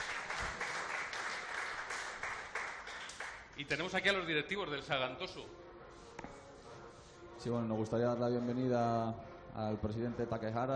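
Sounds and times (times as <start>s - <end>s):
audience applause: 0.0s - 3.5s
speech: 3.6s - 5.6s, 7.4s - 10.7s.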